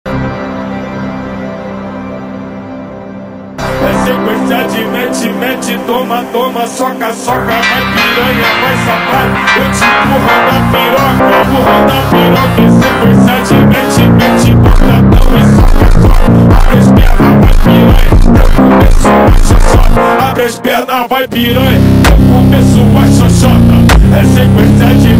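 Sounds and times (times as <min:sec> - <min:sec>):
Brazilian phonk music: 0:00.1 - 0:25.1.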